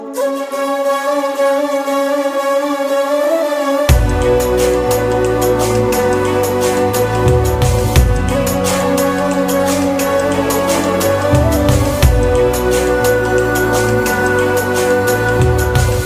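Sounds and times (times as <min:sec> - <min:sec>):
background music ringtone: 0:00.0 - 0:16.0.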